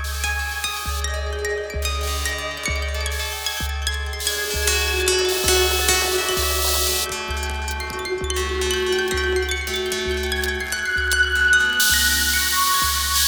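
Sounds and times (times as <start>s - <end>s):
string instruments noise: 0.0s - 13.2s.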